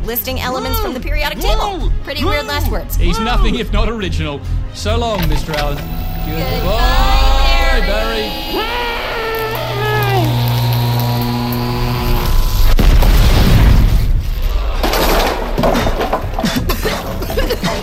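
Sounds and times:
speech: 0.0s - 9.0s
rumbling noise: 2.7s - 17.4s
electric hum with harmonic tones: 2.9s - 14.4s
crackling splintering debris: 9.3s - 16.4s
chair exploding blast: 12.3s - 16.2s.

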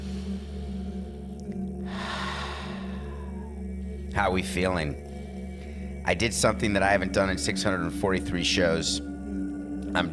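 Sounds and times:
deep breath in through the nose and out through the mouth: 0.0s - 6.6s
steady low hum: 0.0s - 10.1s
speech: 4.2s - 5.1s, 6.1s - 9.1s.

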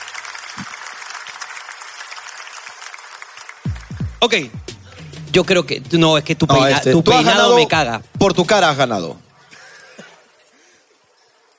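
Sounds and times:
audience applause: 0.0s - 4.4s
speech: 4.2s - 4.6s, 5.3s - 9.2s.

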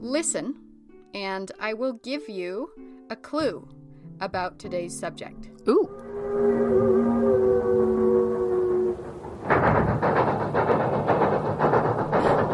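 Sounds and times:
speech: 0.0s - 6.8s
train horn blaring a multi-toned chord: 5.9s - 9.5s
passing train rumbling with rhythmic rattling and clatter: 6.1s - 12.5s.

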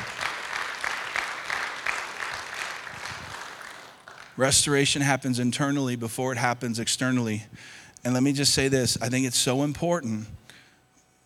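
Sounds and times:
audience round of applause: 0.0s - 4.4s
speech: 4.4s - 10.4s.

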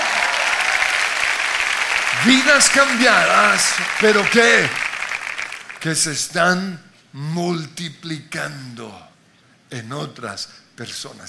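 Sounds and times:
audience applause: 0.0s - 6.0s
speech: 2.2s - 4.9s, 5.8s - 9.1s, 9.7s - 11.2s.

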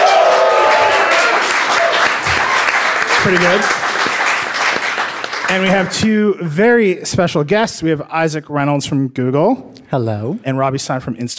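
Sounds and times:
live audience clapping at Mozilla's Glass Room in San Francisco: 0.0s - 6.2s
speech: 3.2s - 3.8s, 5.5s - 11.3s.

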